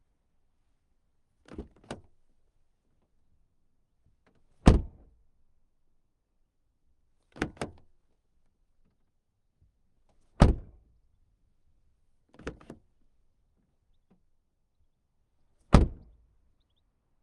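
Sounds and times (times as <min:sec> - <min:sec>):
Kia Niro hybrid car door heard from the outside: 0:04.6 - 0:05.0, 0:10.4 - 0:10.7, 0:15.7 - 0:16.0.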